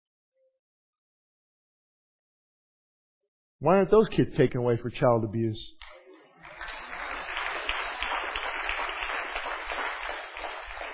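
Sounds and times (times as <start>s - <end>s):
speech: 3.6s - 5.9s
audience clapping: 5.8s - 10.9s.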